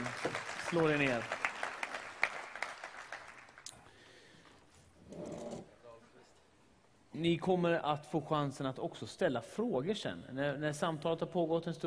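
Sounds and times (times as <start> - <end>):
audience applause: 0.0 - 3.6
speech: 0.7 - 1.4, 7.2 - 11.8.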